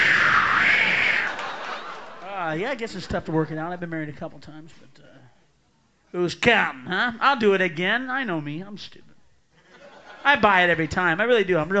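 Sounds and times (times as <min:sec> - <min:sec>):
audience applause: 0:00.8 - 0:02.6
laughter: 0:00.8 - 0:03.5, 0:09.6 - 0:10.8
speech: 0:02.6 - 0:05.3, 0:06.1 - 0:09.1, 0:10.2 - 0:11.7.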